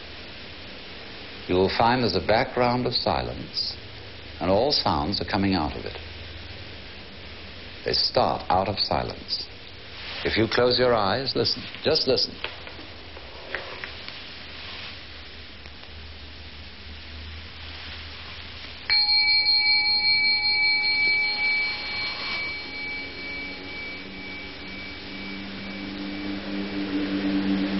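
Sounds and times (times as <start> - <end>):
speech: 1.5 - 3.8, 4.4 - 6.1, 7.8 - 9.5, 10.2 - 12.6
bell ringing: 18.9 - 27.6.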